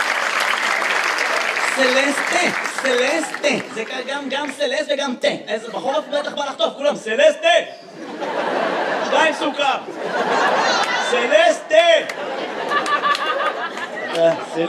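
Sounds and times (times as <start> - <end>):
audience applause: 0.0 - 4.7, 12.1 - 14.4
laughter: 1.1 - 4.6, 5.5 - 6.8, 7.8 - 14.6
speech: 1.8 - 8.5, 9.1 - 12.4, 14.2 - 14.6.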